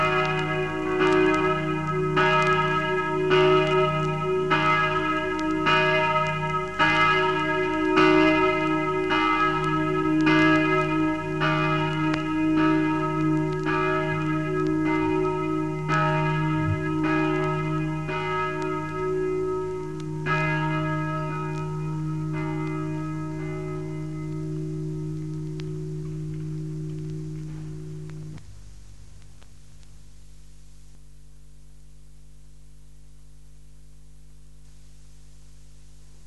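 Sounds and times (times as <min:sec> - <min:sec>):
new church bells ringing: 0:00.0 - 0:28.3.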